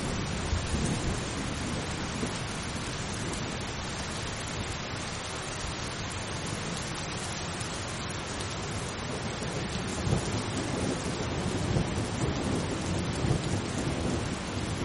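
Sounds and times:
thunder rumbling: 0:00.0 - 0:03.6, 0:09.4 - 0:14.8
steady rain in a thunderstorm: 0:00.0 - 0:14.8.

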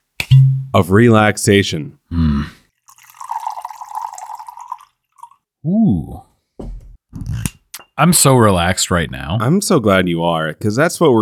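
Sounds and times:
speech: 0:00.7 - 0:02.6, 0:05.6 - 0:06.3, 0:08.0 - 0:11.2
pouring scotch and water into glass: 0:02.8 - 0:05.4.

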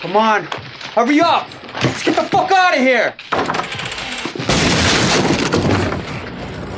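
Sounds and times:
speech: 0:00.0 - 0:03.5
gunshot during a hurried armed getaway: 0:04.5 - 0:06.2.

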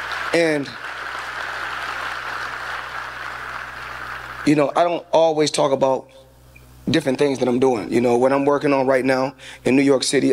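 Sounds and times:
audience applause: 0:00.0 - 0:04.5
speech: 0:00.3 - 0:00.8, 0:04.4 - 0:06.2, 0:06.9 - 0:10.3.

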